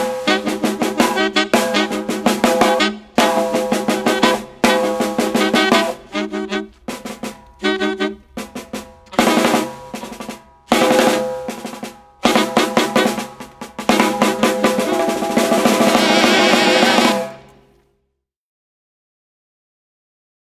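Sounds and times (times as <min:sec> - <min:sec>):
snare drum: 0:00.0 - 0:17.6
saxophone: 0:00.0 - 0:17.7.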